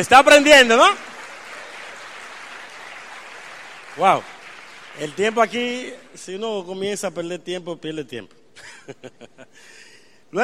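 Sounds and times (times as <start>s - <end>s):
speech: 0.0s - 1.1s, 4.0s - 4.3s, 5.0s - 10.4s
audience applause: 0.3s - 6.0s.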